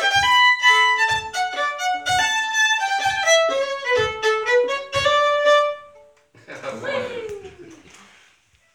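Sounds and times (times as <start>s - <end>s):
polka music: 0.0s - 6.2s
laughter: 6.4s - 8.0s.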